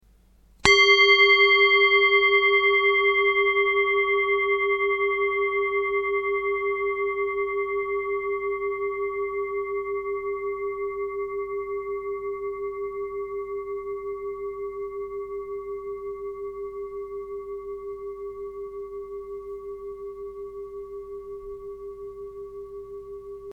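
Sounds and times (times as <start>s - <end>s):
singing bowl: 0.6s - 23.5s.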